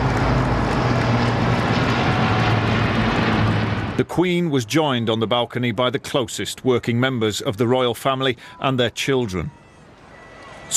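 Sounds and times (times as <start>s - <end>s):
RAF flypast of 70 military aircraft overhead: 0.0s - 4.7s
speech: 4.0s - 9.6s.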